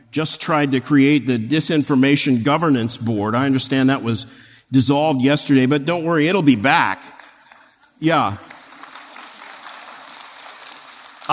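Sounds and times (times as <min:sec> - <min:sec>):
speech: 0:00.2 - 0:07.2, 0:08.0 - 0:08.5
crowd clapping: 0:07.0 - 0:11.3.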